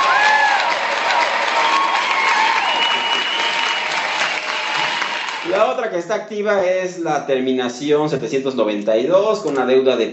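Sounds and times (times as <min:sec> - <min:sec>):
crowd applause: 0:00.0 - 0:05.7
faint whoops and whistles: 0:01.6 - 0:04.6
speech: 0:05.9 - 0:10.1.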